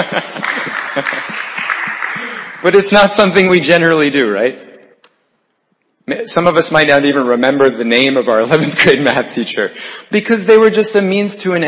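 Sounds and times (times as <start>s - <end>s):
speech: 0.0s - 1.3s, 2.6s - 4.6s, 6.1s - 11.6s
laughter: 0.0s - 2.7s, 8.4s - 9.8s
audience clapping: 0.0s - 2.9s.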